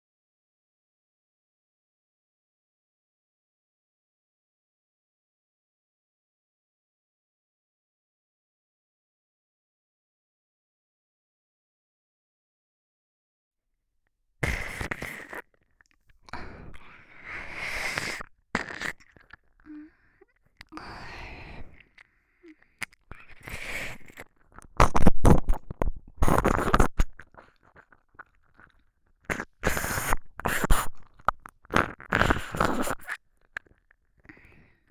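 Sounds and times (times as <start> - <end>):
ear licking practice: 14.4 - 34.8.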